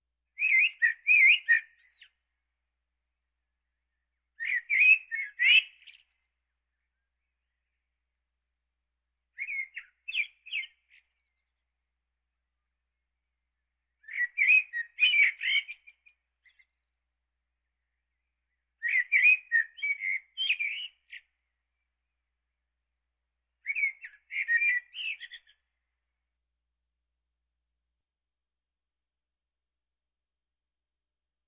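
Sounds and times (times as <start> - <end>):
birds: 0.3 - 8.4, 9.2 - 22.8, 23.4 - 26.2.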